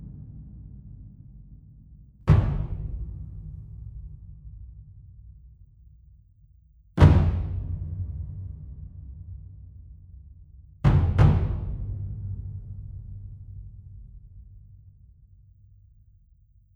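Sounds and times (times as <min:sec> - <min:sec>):
huge drum slams: 0:02.2 - 0:04.9, 0:07.0 - 0:09.7, 0:10.8 - 0:14.6.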